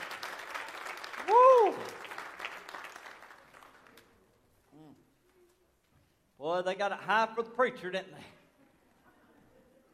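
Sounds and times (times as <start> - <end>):
audience hand clapping: 0.0 - 4.2
speech: 6.6 - 8.4.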